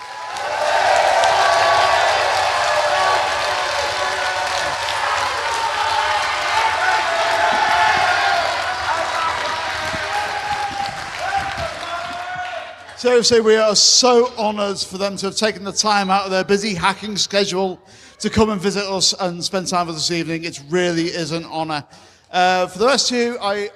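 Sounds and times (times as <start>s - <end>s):
audience applause and cheering: 0.0s - 13.6s
speech: 13.0s - 23.7s.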